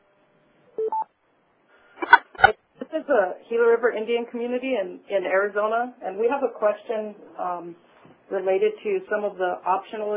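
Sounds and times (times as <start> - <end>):
telephone keypad DTMF tones: 0.8 - 1.1
noise as someone comes on the line: 2.0 - 3.0
speech: 3.1 - 10.1.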